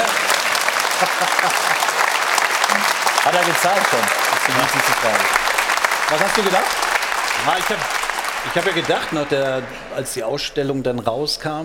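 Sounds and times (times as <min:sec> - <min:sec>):
child clapping hands: 0:00.0 - 0:09.6
laughter: 0:00.0 - 0:10.4
speech: 0:01.0 - 0:01.9, 0:02.7 - 0:05.5, 0:06.1 - 0:06.8, 0:07.4 - 0:11.6.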